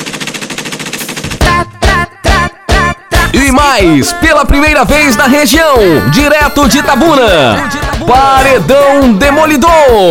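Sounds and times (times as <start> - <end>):
machine gun fire sound effect: 0.0 - 1.6
speech: 3.3 - 10.0.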